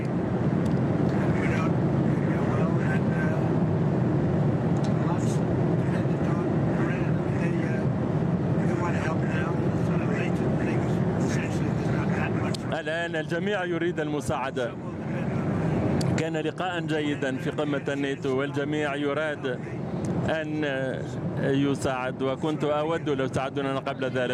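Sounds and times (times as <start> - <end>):
airplane cabin roar of engines and air during an in-flight call: 0.0 - 24.3
speech: 13.0 - 14.8, 16.2 - 24.3.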